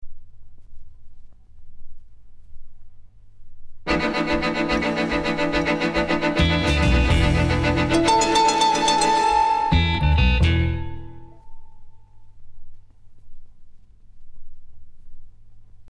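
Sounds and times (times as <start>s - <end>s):
augmented string quartet hurry-up sting: 3.9s - 11.4s.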